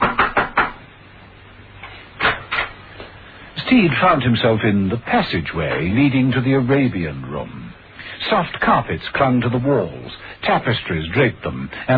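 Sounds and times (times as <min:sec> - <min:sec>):
knocking on a door: 0:00.0 - 0:00.8
speech: 0:03.7 - 0:07.6, 0:08.3 - 0:11.9.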